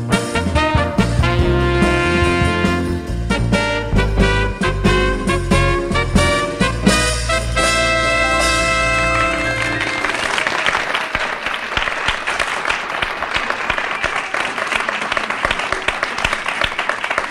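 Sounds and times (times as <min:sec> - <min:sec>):
orchestra final held chord: 0:00.1 - 0:10.4
studio audience applauding an orchestra: 0:08.3 - 0:17.3.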